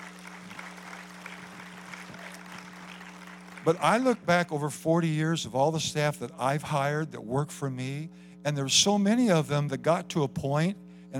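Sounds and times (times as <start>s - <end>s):
audience hand clapping: 0.0s - 4.2s
speech: 3.6s - 11.1s.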